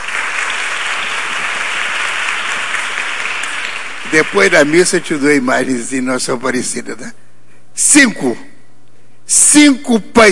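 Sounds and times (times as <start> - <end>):
round of applause: 0.0 - 5.1
speech: 4.1 - 7.2, 7.8 - 8.5, 9.3 - 10.3.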